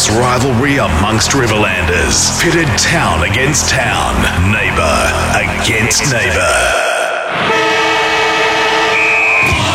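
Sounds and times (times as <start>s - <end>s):
speech: 0.1s - 7.6s
football match siren: 7.4s - 9.6s.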